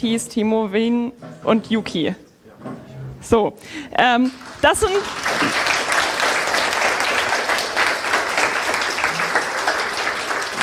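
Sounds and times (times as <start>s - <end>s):
speech: 0.0s - 2.2s, 3.2s - 5.7s
audience applause: 4.4s - 10.6s.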